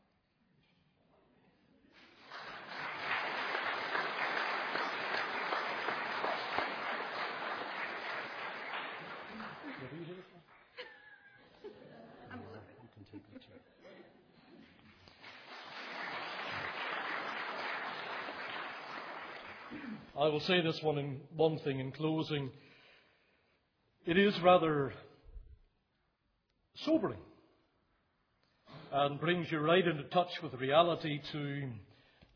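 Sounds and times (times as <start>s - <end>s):
audience applauding: 2.0s - 10.8s, 14.9s - 20.2s
laughter: 2.7s - 14.8s
speech: 20.2s - 22.6s, 24.1s - 25.0s, 26.8s - 27.3s, 28.9s - 32.3s.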